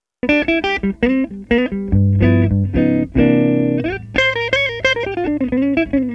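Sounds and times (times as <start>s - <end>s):
guitar: 0.2s - 6.1s.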